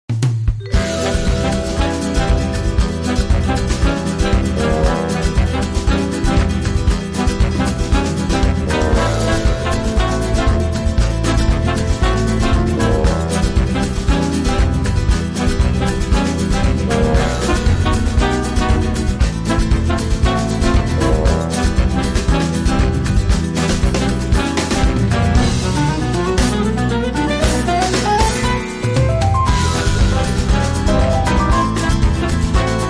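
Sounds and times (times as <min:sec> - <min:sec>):
samba music: 0:00.2 - 0:32.8.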